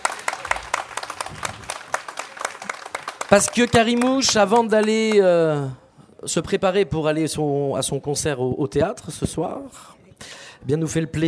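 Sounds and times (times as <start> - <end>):
audience applause: 0.0 - 5.4
speech: 3.3 - 11.2.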